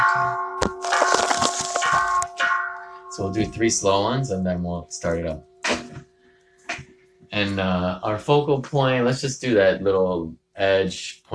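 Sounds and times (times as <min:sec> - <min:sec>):
Buddhist bell app chime: 0:00.0 - 0:05.5
speech: 0:03.2 - 0:05.5, 0:07.4 - 0:11.3.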